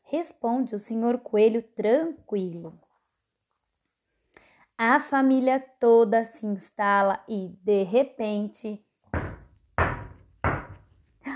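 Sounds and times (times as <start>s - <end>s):
speech: 0.1s - 2.8s, 4.8s - 8.8s
heavy knocks on a door: 9.1s - 10.9s.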